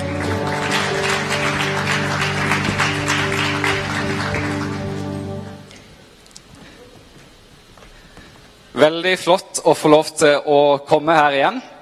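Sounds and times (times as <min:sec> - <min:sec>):
audience applause for singer and musicians: 0:00.0 - 0:05.8
speech: 0:08.8 - 0:11.7.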